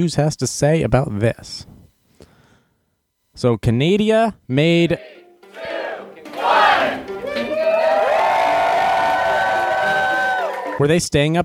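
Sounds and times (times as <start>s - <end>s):
speech: 0.0s - 1.7s, 3.4s - 5.1s, 10.8s - 11.4s
people in Canada cheering: 4.9s - 10.8s.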